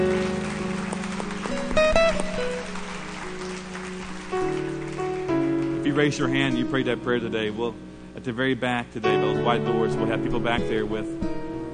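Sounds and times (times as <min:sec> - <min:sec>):
audience hand clapping: 0:00.0 - 0:06.6
speech: 0:06.0 - 0:11.3.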